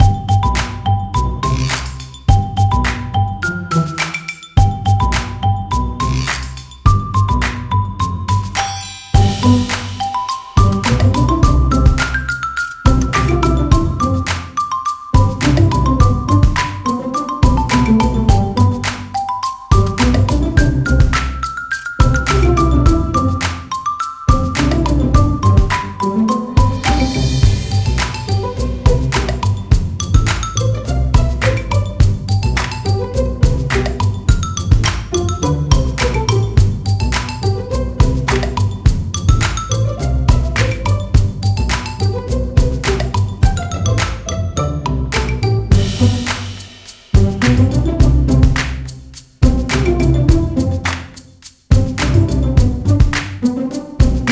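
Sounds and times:
music loop: 0.0 - 54.3.

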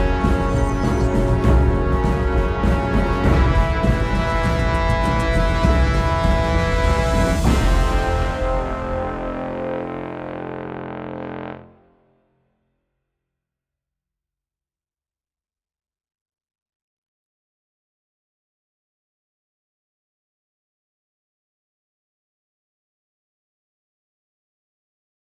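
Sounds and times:
tense music: 0.0 - 12.4.

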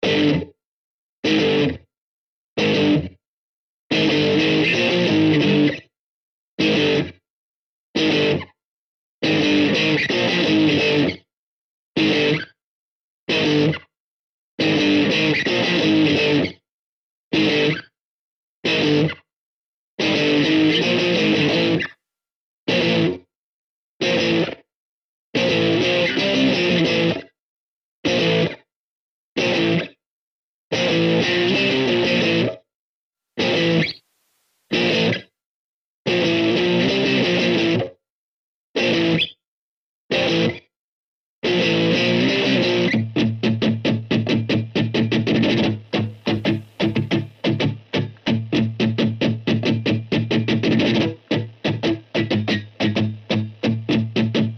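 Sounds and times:
guitar riff: 0.0 - 0.5, 1.2 - 1.8, 2.6 - 3.2, 3.9 - 5.8, 6.6 - 7.2, 8.0 - 8.5, 9.2 - 11.2, 12.0 - 12.5, 13.3 - 13.8, 14.6 - 16.6, 17.4 - 17.8, 18.7 - 19.1, 20.0 - 21.9, 22.7 - 23.2, 24.0 - 24.5, 25.4 - 27.2, 29.4 - 29.9, 30.8 - 32.5, 33.4 - 34.1, 34.7 - 35.3, 36.1 - 37.9, 38.8 - 39.3, 40.1 - 40.6, 41.4 - 54.5.

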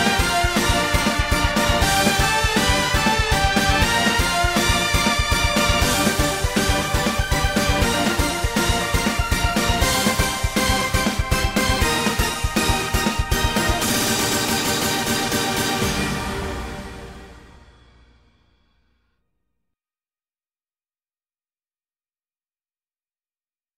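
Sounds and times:
trance music: 0.0 - 18.2.

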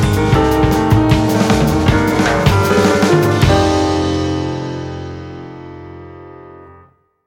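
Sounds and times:
jingle: 0.2 - 4.9.

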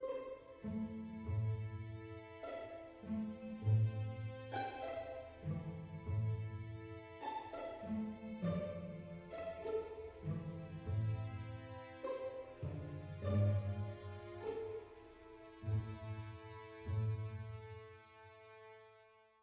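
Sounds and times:
soft adventure music: 0.0 - 18.0.

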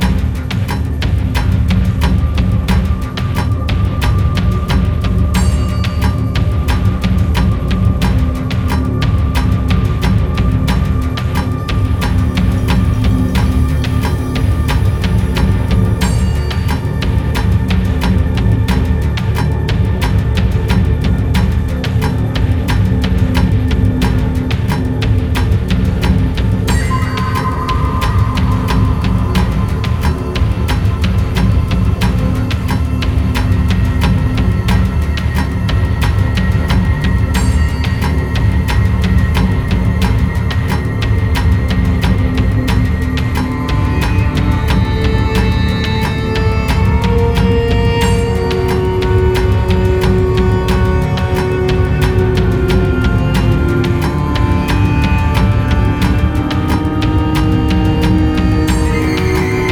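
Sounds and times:
high tension battle music: 0.0 - 59.7.

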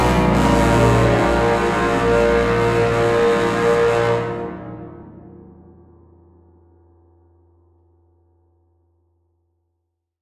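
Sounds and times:
high-intensity action music: 0.0 - 6.1.

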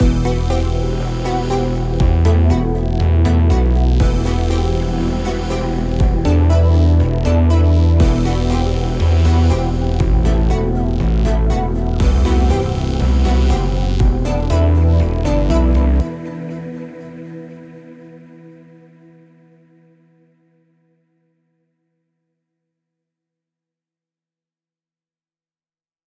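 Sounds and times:
music intro: 0.0 - 19.9.

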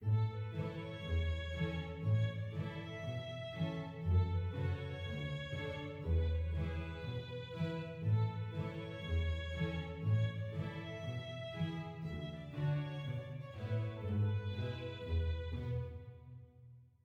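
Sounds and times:
happy soft music: 0.0 - 15.9.

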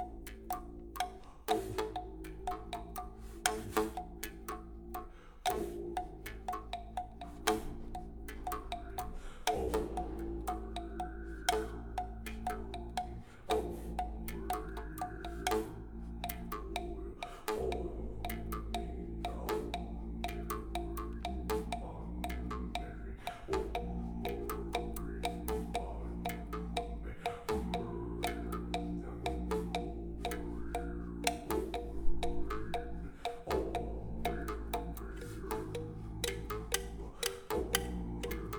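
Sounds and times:
jaw harp: 0.0 - 38.5
sanza thumb piano: 0.0 - 38.5
voice: 8.5 - 38.5.

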